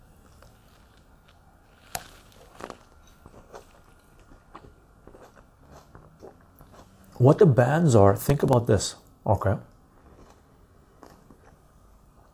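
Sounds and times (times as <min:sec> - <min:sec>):
low hum: 0:00.0 - 0:12.3
wet chewing on a juicy plum: 0:00.2 - 0:07.2
speech: 0:07.2 - 0:09.7.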